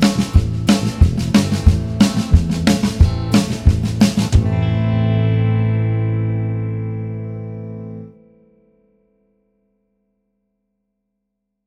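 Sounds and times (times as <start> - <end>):
guitar vamp in A minor: 0.0 - 8.9.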